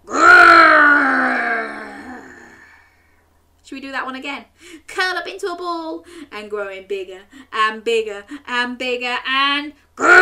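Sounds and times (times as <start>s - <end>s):
child imitating a tiger's growl: 0.0s - 2.8s, 10.0s - 10.2s
speech: 3.9s - 10.2s.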